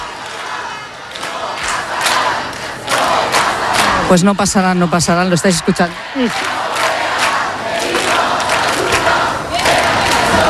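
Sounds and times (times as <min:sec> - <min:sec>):
crowd cheering and shouting to greet someone's arrival: 0:00.0 - 0:10.4
speech: 0:04.1 - 0:06.6.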